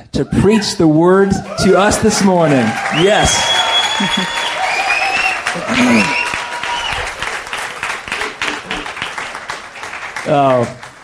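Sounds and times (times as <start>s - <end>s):
speech: 0.0s - 4.5s, 5.6s - 6.2s, 10.3s - 10.8s
crowd applauding: 1.3s - 11.0s
scattered voices and whoops: 2.7s - 7.1s
laughter: 4.0s - 4.4s, 5.5s - 6.6s.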